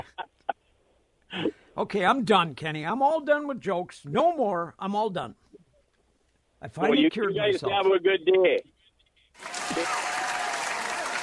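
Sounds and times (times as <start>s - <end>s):
speech: 1.4s - 5.4s, 6.6s - 8.7s, 9.4s - 10.0s
studio audience applause: 9.4s - 11.2s.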